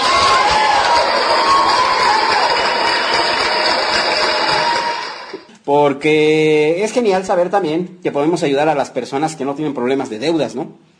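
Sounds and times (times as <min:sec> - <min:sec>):
applause: 0:00.0 - 0:05.5
cheering: 0:00.0 - 0:05.5
speech: 0:05.7 - 0:10.9.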